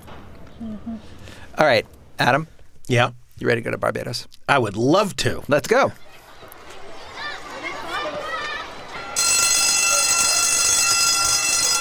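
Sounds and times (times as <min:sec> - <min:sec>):
speech: 0:00.6 - 0:06.0
primary school bell ringing: 0:08.9 - 0:11.7.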